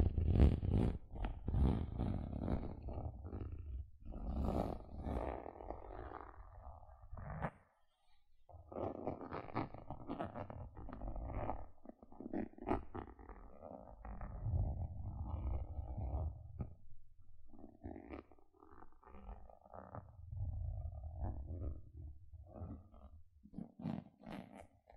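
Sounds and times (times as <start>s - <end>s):
gentle scratching: 0.0s - 7.6s, 8.7s - 16.8s, 17.4s - 24.9s.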